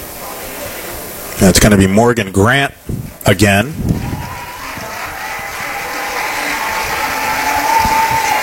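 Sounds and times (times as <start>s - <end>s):
speech: 1.4s - 3.9s
crowd applause and cheering at softball game: 3.8s - 8.4s.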